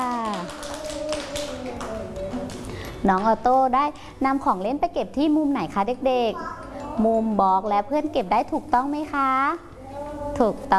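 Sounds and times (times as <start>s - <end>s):
children clapping for a classmate in a classroom: 0.0s - 3.4s
teacher speaking: 0.0s - 3.8s, 5.5s - 10.7s
speech: 3.0s - 9.7s, 10.3s - 10.7s.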